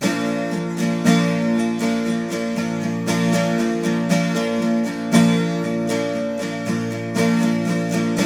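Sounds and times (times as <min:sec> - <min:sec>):
12-string guitar playing B major: 0:00.0 - 0:08.2.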